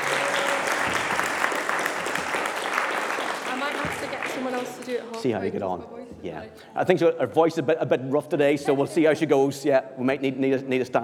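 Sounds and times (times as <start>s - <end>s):
audience clapping: 0.0s - 5.4s
speech: 4.4s - 11.0s.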